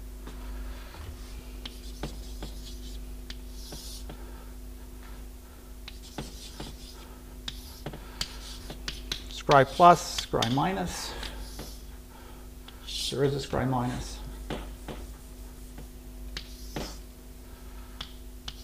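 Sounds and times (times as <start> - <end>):
low hum: 0.0 - 16.4
marker or chalk strokes on a board: 1.1 - 4.2, 5.8 - 11.9, 14.0 - 17.1, 18.0 - 18.6
speech: 9.5 - 11.2, 13.1 - 14.1.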